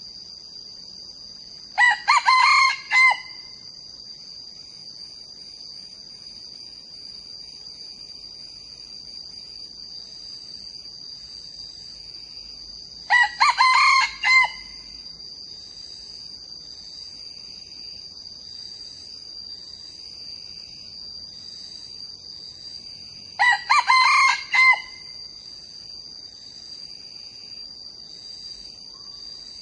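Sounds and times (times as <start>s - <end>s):
young male red junglefowl crowing: 1.8s - 3.6s, 13.1s - 15.0s, 23.4s - 25.2s.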